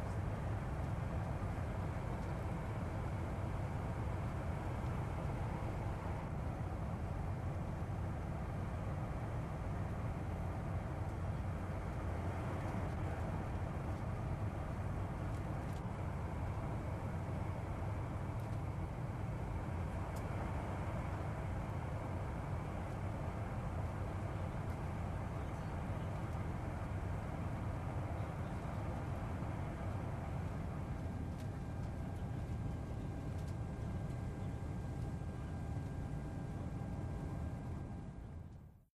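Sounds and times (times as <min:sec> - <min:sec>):
747 jet interior during descent: 0:00.0 - 0:38.9.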